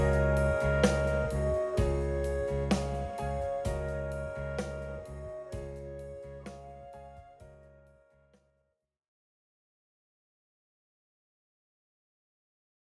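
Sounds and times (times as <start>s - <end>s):
backing track: 0.0s - 6.7s.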